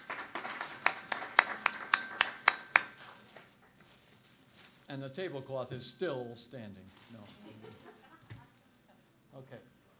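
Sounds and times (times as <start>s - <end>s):
round of applause: 0.0s - 3.0s
speech: 4.9s - 7.4s.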